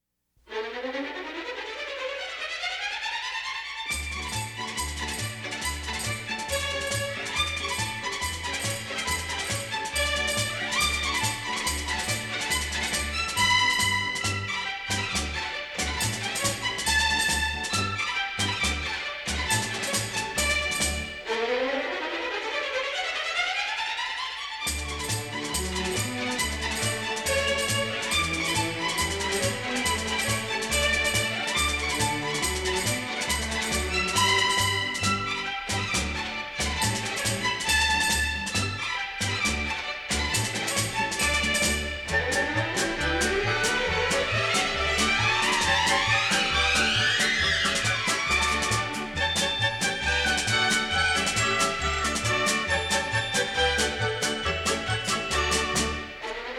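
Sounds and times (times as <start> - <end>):
Brazilian polka on orchestra strings: 0.5 - 56.5.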